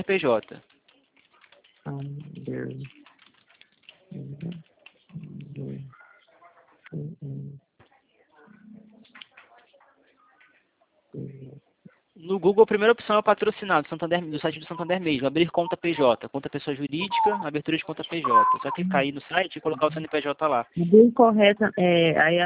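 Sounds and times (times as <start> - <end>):
speech: 0.0 - 0.7, 1.9 - 3.0, 12.3 - 22.4
typing on a computer keyboard into a web browser: 0.1 - 5.6.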